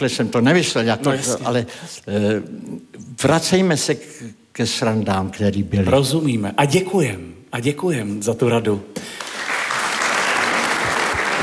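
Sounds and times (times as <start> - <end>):
speech: 0.0 - 9.3
audience applause: 9.2 - 11.4.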